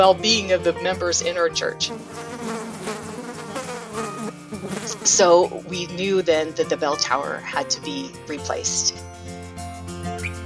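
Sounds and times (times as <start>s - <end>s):
speech: 0.0s - 2.6s, 4.8s - 9.2s
flies buzzing: 1.6s - 5.6s.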